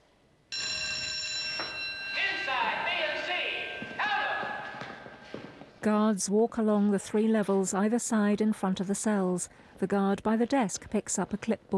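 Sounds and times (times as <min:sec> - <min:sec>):
alarm bell ringing in prison: 0:00.5 - 0:05.2
speech: 0:05.8 - 0:11.7.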